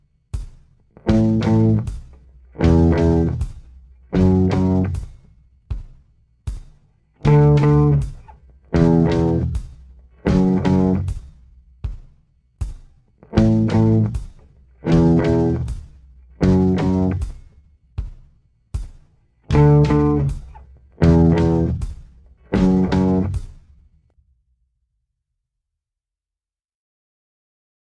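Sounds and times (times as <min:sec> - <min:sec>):
slow guitar riff: 0:01.1 - 0:01.9, 0:02.6 - 0:03.4, 0:04.2 - 0:05.0, 0:07.3 - 0:08.1, 0:08.8 - 0:09.6, 0:10.2 - 0:11.1, 0:13.3 - 0:14.2, 0:14.8 - 0:15.7, 0:16.4 - 0:17.2, 0:19.5 - 0:21.9, 0:22.5 - 0:23.4.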